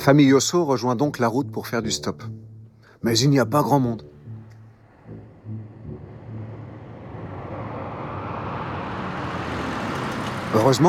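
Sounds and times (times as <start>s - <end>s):
speech: 0.0s - 4.1s, 10.5s - 10.8s
large convertible car pulling up and stopping: 4.0s - 10.8s.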